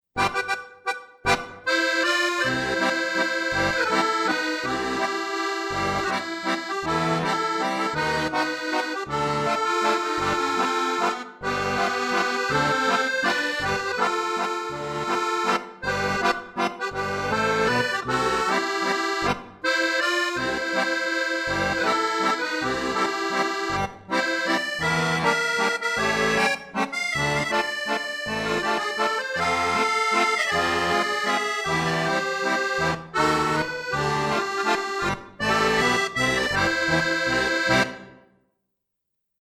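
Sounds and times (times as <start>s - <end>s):
accordion playing an Italian song: 0.2s - 38.3s.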